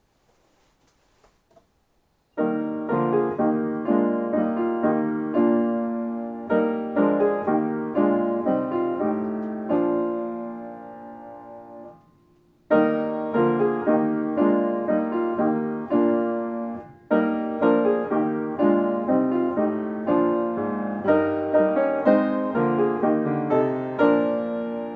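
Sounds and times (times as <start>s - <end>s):
music: 2.3s - 24.9s.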